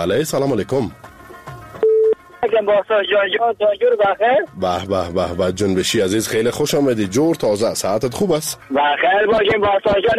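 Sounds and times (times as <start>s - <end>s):
speech: 0.0s - 1.1s, 2.4s - 10.1s
telephone tone on a call-in radio show: 1.8s - 2.2s
voice over a phone line: 2.4s - 4.4s, 8.7s - 10.1s.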